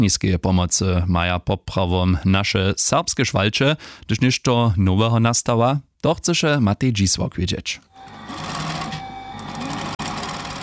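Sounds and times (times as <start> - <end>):
speech: 0.0 - 8.6
sewing machine stitching: 8.0 - 10.6.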